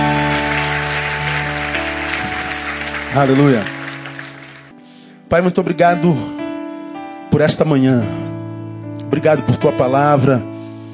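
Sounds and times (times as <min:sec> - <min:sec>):
audience applauding: 0:00.0 - 0:04.8
speech: 0:03.1 - 0:03.8, 0:05.3 - 0:06.4, 0:07.4 - 0:08.2, 0:09.1 - 0:10.5.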